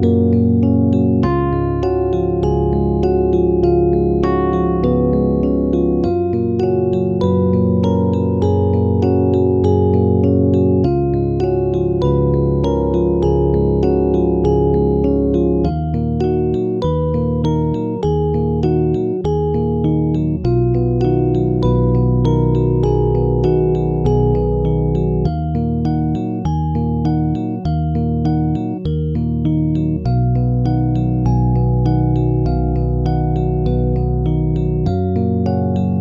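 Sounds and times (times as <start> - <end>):
bittersweet Rhodes electric piano chords: 0.0 - 36.0.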